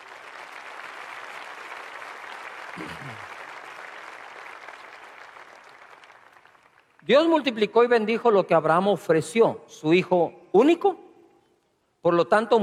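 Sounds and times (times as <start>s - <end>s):
audience applause: 0.0s - 7.0s
speech: 2.8s - 3.3s, 7.1s - 11.0s, 12.0s - 12.6s.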